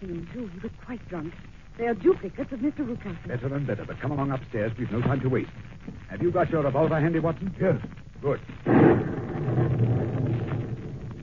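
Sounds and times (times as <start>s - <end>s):
speech: 0.0s - 9.6s
thunder from a nearby lightning strike: 8.3s - 11.2s.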